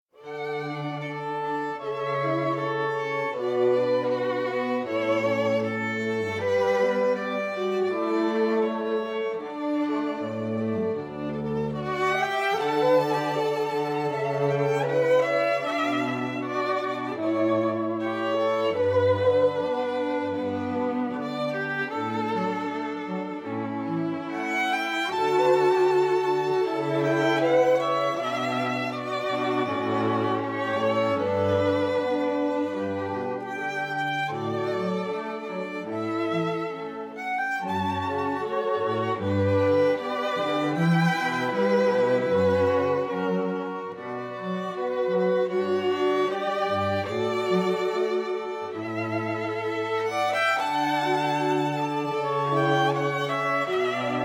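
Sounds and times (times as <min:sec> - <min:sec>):
string quartet: 0:00.0 - 0:54.2.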